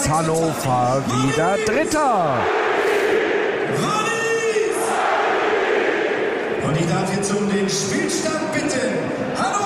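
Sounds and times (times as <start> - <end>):
stadium crowd roaring celebrating a Hannover goal: 0.0 - 9.6
speech: 0.1 - 4.0, 6.7 - 9.6
stadium crowd chanting: 1.1 - 6.6.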